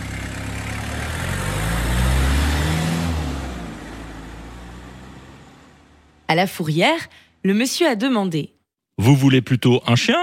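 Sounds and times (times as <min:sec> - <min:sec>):
van engine driving out of garage: 0:00.0 - 0:07.8
speech: 0:06.3 - 0:10.2.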